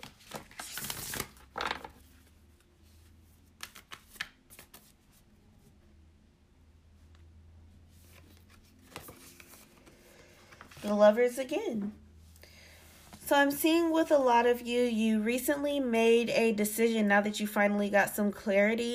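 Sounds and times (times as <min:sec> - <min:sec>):
Cannabis Oracle deck oracle cards being shuffled: 0:00.0 - 0:05.2, 0:08.0 - 0:11.0
speech: 0:10.8 - 0:12.0, 0:13.3 - 0:18.9.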